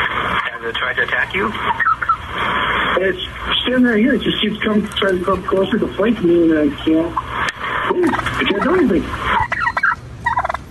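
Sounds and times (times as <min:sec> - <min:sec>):
turkey gobbling: 0:00.0 - 0:02.6, 0:05.2 - 0:10.6
speech: 0:00.6 - 0:07.3, 0:07.9 - 0:09.4.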